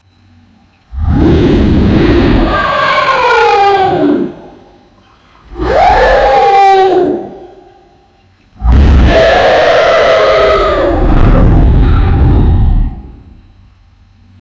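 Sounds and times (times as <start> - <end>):
dragon roar: 0.9 - 4.7, 5.5 - 7.6, 8.6 - 13.4.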